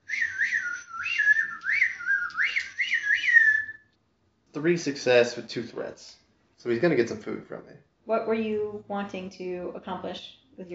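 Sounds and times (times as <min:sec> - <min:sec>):
person whistling an imitation of a magpie: 0:00.0 - 0:03.9
speech: 0:04.6 - 0:10.7.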